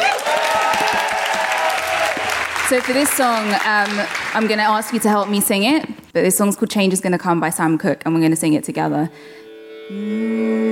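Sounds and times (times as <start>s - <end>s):
crowd applauding: 0.0s - 6.0s
speech: 2.7s - 10.6s.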